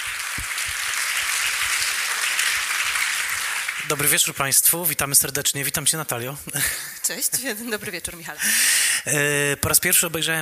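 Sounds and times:
audience applause: 0:00.0 - 0:04.6
speech: 0:03.9 - 0:10.4.

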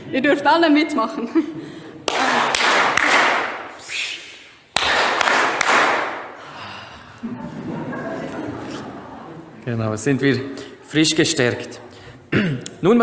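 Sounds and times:
speech: 0:00.1 - 0:01.8, 0:09.7 - 0:13.0
hands clapping: 0:02.0 - 0:06.4
laughter: 0:07.0 - 0:09.8.

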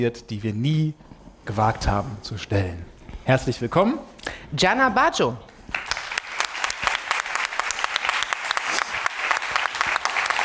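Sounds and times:
speech: 0:00.0 - 0:05.5
audience applause: 0:05.7 - 0:10.4.

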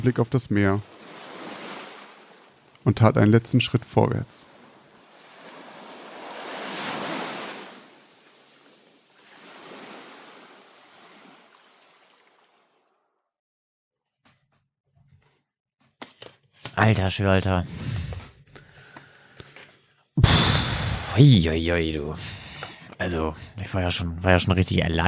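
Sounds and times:
speech: 0:00.0 - 0:00.9, 0:02.8 - 0:04.5, 0:16.8 - 0:18.2, 0:21.2 - 0:22.4, 0:23.0 - 0:25.0
ocean waves rushing: 0:00.0 - 0:12.7, 0:20.2 - 0:21.6.

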